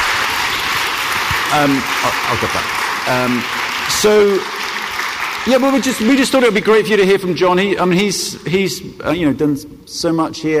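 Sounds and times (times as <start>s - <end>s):
audience round of applause: 0.0s - 7.1s
speech: 1.5s - 4.6s, 5.4s - 10.5s.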